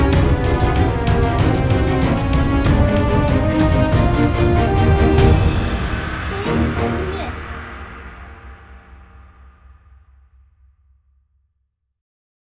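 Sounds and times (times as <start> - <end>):
battle music: 0.0 - 8.6.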